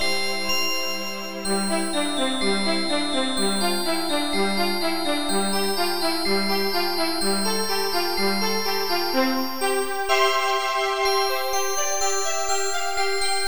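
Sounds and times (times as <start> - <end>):
glockenspiel: 0.0 - 13.4
violin: 0.0 - 13.4.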